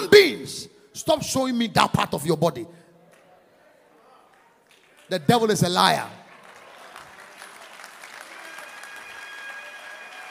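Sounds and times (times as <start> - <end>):
speech: 0.5 - 2.8, 5.1 - 6.2
audience clapping hands: 4.3 - 10.2.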